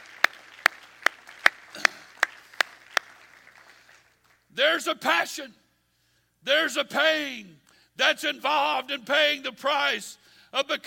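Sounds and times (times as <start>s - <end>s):
audience clapping hands: 0.0s - 4.5s
speech: 4.6s - 5.6s, 6.4s - 10.8s.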